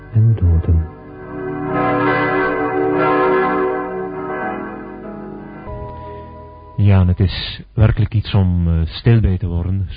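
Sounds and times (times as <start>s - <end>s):
heavy church bells ringing: 0.0s - 6.8s
speech: 0.1s - 1.0s, 6.9s - 9.9s.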